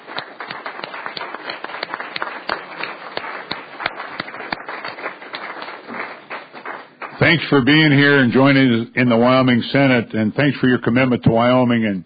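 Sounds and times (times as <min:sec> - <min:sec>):
clapping to welcome guests on the floor of the Wyoming Senate: 0:00.0 - 0:08.2
speech: 0:07.2 - 0:12.0.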